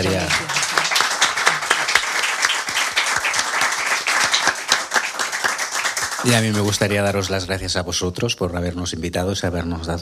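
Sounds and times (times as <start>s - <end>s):
crowd applauding: 0.0s - 7.6s
speech: 6.2s - 10.0s.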